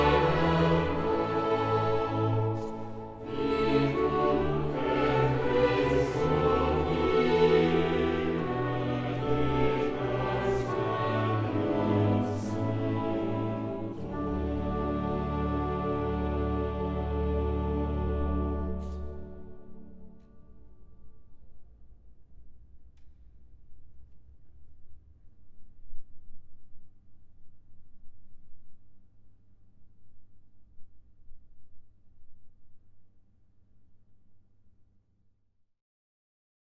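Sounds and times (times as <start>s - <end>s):
choir singing: 0.0s - 20.4s.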